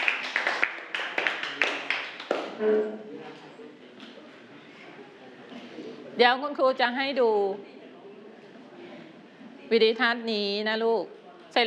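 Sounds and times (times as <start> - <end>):
class clapping: 0.0 - 2.6
speech: 2.6 - 3.5, 6.2 - 7.7, 9.7 - 11.6.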